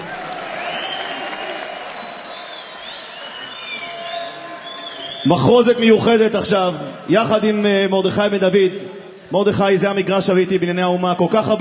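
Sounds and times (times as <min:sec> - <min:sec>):
loud sustained applause from a large yeshiva crowd at a Sukkot concert in Jerusalem: 0:00.0 - 0:05.2
crowd cheering: 0:00.0 - 0:05.9
whistles: 0:00.5 - 0:05.5
speech: 0:05.2 - 0:11.5.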